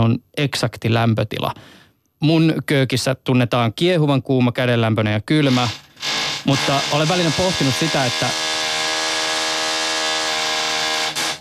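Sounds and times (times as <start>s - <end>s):
speech: 0.0s - 5.8s, 6.4s - 8.5s
power tool whining during renovation work: 5.5s - 11.3s.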